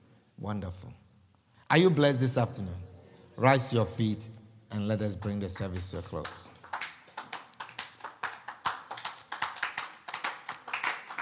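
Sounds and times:
speech: 0.4 - 1.1, 1.7 - 6.5
people clapping: 5.2 - 11.2.

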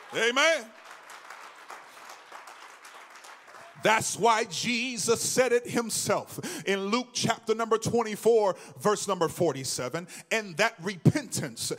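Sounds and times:
audience clapping hands: 0.0 - 4.8
speech: 0.1 - 0.8, 3.8 - 11.7.

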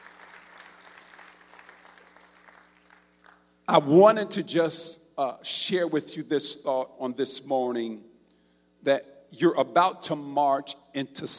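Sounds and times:
audience clapping hands: 0.0 - 3.5
speech: 3.7 - 8.1, 8.8 - 11.3.

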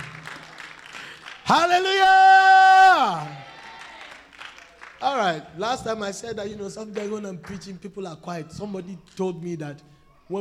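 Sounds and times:
sparse scattered hand claps from a crowd: 0.0 - 2.0, 3.1 - 5.3, 6.5 - 7.8
speech: 1.5 - 3.4, 5.0 - 10.4.

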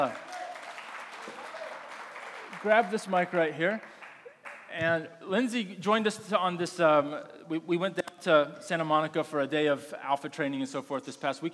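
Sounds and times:
speech: 0.0 - 0.2, 2.6 - 3.9, 4.7 - 11.5
audience applause: 0.0 - 4.7.

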